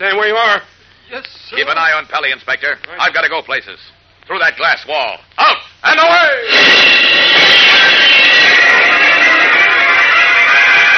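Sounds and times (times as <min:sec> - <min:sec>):
speech: 0:00.0 - 0:07.9
rocketing flight whoosh: 0:06.5 - 0:10.9.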